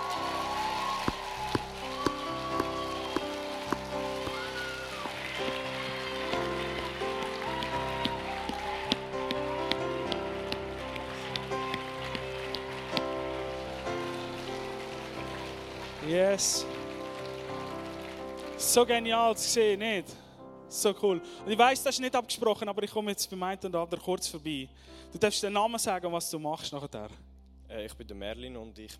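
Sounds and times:
audience applause: 0.0s - 19.6s
speech: 16.1s - 16.8s, 18.7s - 28.9s.

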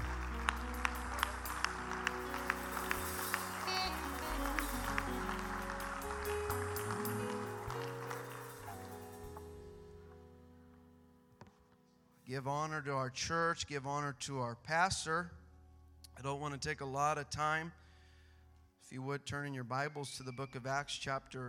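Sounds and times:
audience clapping: 0.0s - 9.4s
speech: 12.4s - 15.4s, 16.2s - 17.8s, 18.9s - 21.4s.

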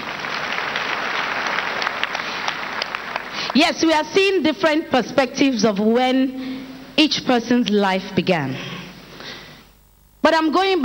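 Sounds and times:
crowd applauding: 0.0s - 3.6s
speech: 3.6s - 8.7s, 10.3s - 10.8s.

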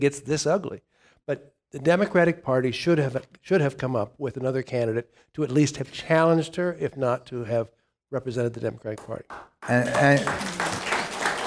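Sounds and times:
speech: 0.0s - 10.9s
audience applause: 9.3s - 11.4s.

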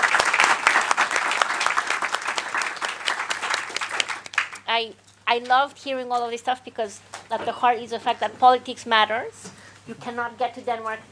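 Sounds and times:
round of applause: 0.0s - 4.7s
speech: 4.8s - 11.1s.

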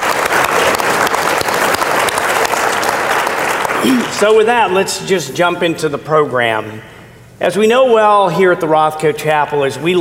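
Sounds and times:
audience applause: 0.0s - 4.2s
speech: 3.8s - 9.9s.

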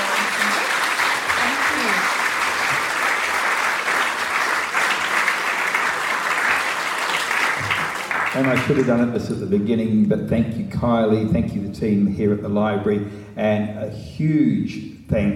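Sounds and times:
audience applause: 0.0s - 9.2s
speech: 8.4s - 15.3s.

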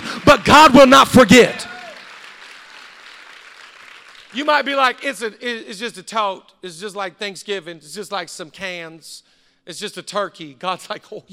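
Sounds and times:
audience clapping: 0.0s - 5.2s
speech: 0.3s - 1.7s, 4.4s - 11.3s.

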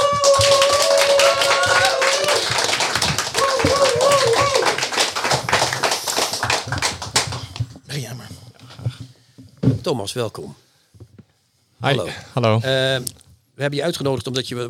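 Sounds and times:
audience applause: 0.0s - 7.6s
speech: 9.9s - 10.7s, 11.8s - 14.6s.

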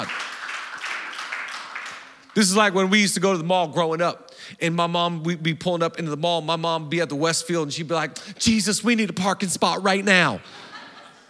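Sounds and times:
people clapping: 0.0s - 2.8s
speech: 2.4s - 10.7s
laughter: 10.4s - 11.2s.

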